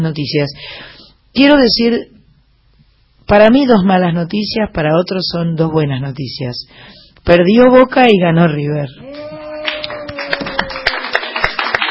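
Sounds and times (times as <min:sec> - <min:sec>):
speech: 0:00.0 - 0:02.2, 0:03.3 - 0:09.3
faint steady hum: 0:00.0 - 0:11.8
people applauding: 0:09.0 - 0:11.8.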